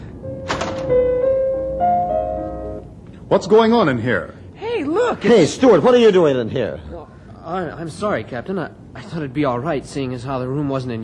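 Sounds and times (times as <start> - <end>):
door opening: 0.3 - 1.5
speech: 3.3 - 11.0.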